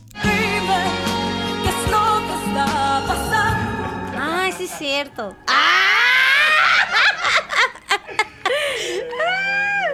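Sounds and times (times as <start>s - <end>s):
song playing: 0.2s - 6.5s
laughter: 3.0s - 9.9s
speech: 4.8s - 5.7s.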